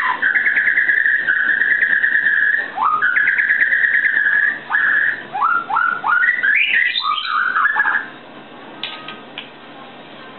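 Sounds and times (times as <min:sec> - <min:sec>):
white-rumped shama singing: 0:00.0 - 0:08.2.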